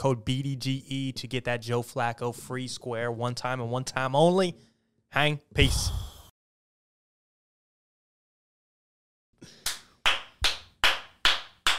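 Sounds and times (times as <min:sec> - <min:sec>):
speech: 0:00.0 - 0:06.0
people clapping: 0:09.5 - 0:11.7.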